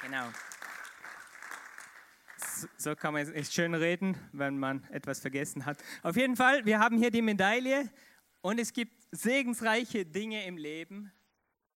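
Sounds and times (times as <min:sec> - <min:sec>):
speech: 0:00.0 - 0:00.5, 0:02.6 - 0:11.2
audience applause: 0:00.0 - 0:02.8.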